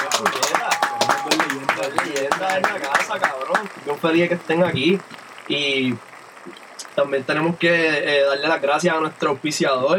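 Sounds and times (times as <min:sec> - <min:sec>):
rhythmic audience clapping: 0:00.0 - 0:07.0
speech: 0:02.4 - 0:09.9.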